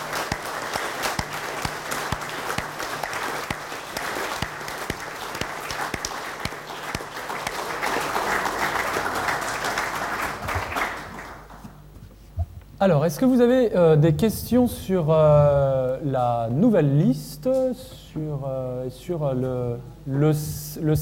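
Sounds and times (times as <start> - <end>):
warm audience applause: 0.0 - 11.6
speech: 12.8 - 21.0.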